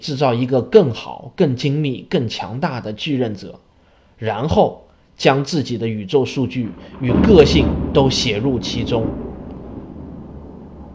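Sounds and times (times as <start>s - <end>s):
speech: 0.0s - 9.2s
thunder rumbling: 6.1s - 10.9s.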